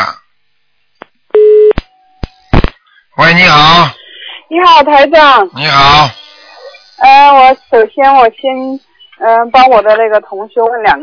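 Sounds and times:
telephone busy tone after dropped line: 1.4 - 1.7
speech: 3.2 - 6.2, 7.0 - 11.0.

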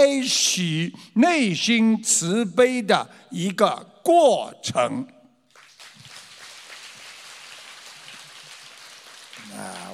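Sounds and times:
speech: 0.0 - 5.2
sparse scattered applause: 5.5 - 9.9.

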